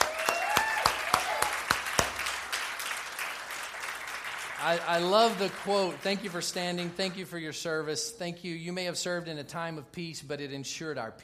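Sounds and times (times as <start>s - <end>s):
audience applauding standing veterans: 0.0s - 7.0s
speech: 4.6s - 11.2s.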